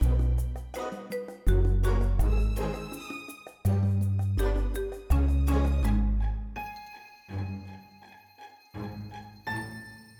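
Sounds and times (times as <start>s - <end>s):
music loop: 0.0s - 6.2s.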